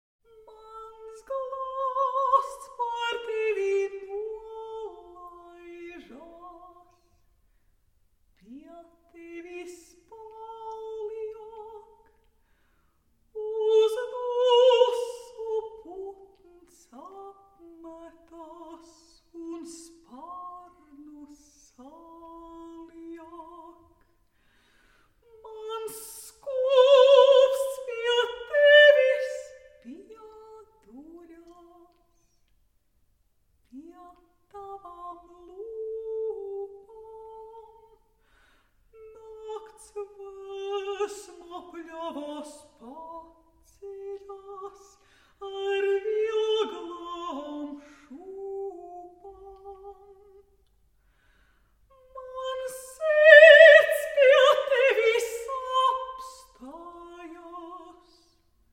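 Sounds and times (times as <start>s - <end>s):
solo a cappella voice: 0.2s - 32.8s, 33.4s - 58.7s.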